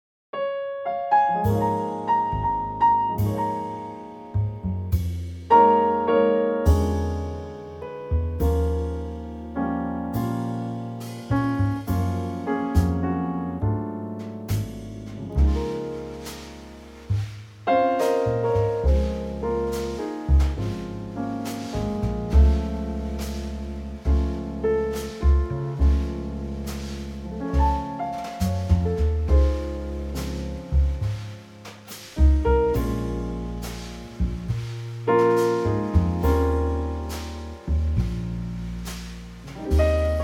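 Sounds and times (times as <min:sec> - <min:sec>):
trio music: 0:01.1 - 0:40.2.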